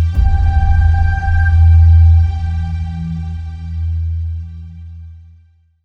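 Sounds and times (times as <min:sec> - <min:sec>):
dark logo sting: 0:00.2 - 0:05.2.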